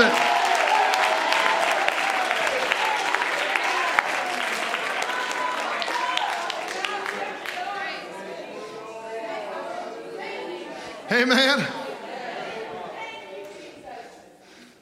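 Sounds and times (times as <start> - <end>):
crowd clapping: 0.0 - 8.9
speech: 11.2 - 11.8.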